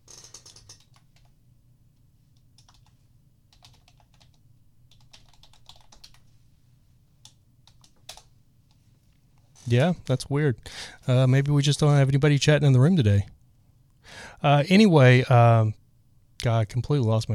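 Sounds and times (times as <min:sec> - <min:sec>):
computer keyboard typing: 0:00.0 - 0:01.4, 0:02.4 - 0:06.3, 0:07.2 - 0:08.8
speech: 0:09.7 - 0:13.4, 0:14.4 - 0:15.8, 0:16.4 - 0:17.3.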